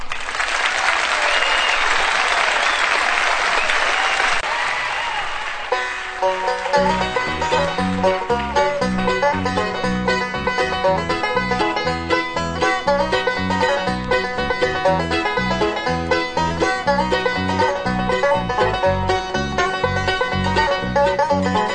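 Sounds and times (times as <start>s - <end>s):
audience applause welcoming a band at a live recording: 0.0s - 9.8s
music: 5.7s - 21.7s.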